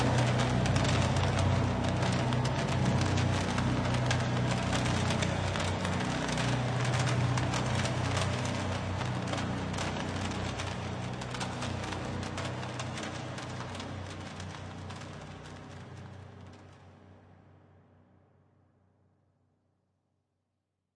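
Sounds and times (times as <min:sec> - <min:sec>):
grainy drone: 0:00.0 - 0:16.5.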